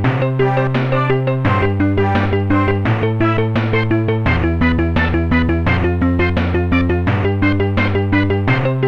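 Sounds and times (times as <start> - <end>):
canon piece: 0.1 - 8.7.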